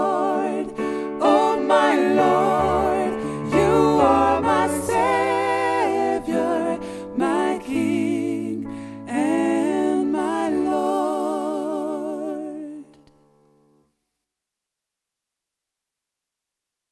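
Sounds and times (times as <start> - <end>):
sopranos singing gospel: 0.0 - 13.0.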